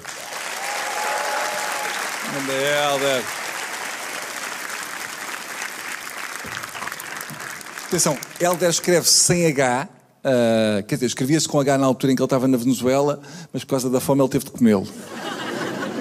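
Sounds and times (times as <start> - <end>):
audience applause: 0.0 - 9.2
speech: 2.3 - 3.4, 7.9 - 15.3
laughter: 15.0 - 15.9.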